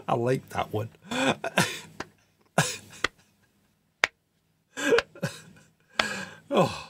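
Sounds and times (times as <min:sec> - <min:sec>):
speech: 0:00.2 - 0:01.7
slow hand claps: 0:03.0 - 0:03.2, 0:04.9 - 0:05.2, 0:06.0 - 0:06.2
breathy bursts: 0:05.9 - 0:06.8.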